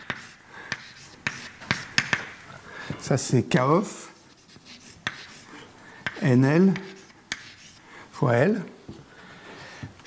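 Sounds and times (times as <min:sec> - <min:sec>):
chalk or marker strokes on a board during a mathematics lecture: 0:00.0 - 0:02.4, 0:04.2 - 0:07.8
speech: 0:03.0 - 0:04.0, 0:06.2 - 0:06.9, 0:08.2 - 0:08.8.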